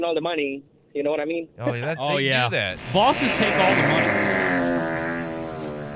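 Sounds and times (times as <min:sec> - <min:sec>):
speech: 0:00.0 - 0:04.3
fart sound effect: 0:02.8 - 0:05.9.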